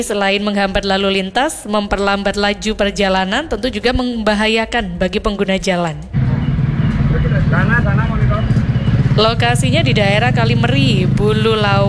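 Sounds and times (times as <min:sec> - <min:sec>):
speech: 0:00.0 - 0:06.2, 0:07.1 - 0:08.1, 0:09.2 - 0:11.8
slow overloaded sugarcane truck engine rumble on the road near Kalimeri, Bululawang: 0:06.1 - 0:11.8.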